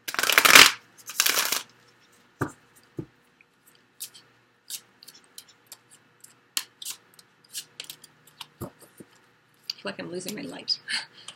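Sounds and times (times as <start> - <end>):
Sensual Wicca Tarot cards being shuffled: 0.1 - 1.6
speech: 9.8 - 11.1.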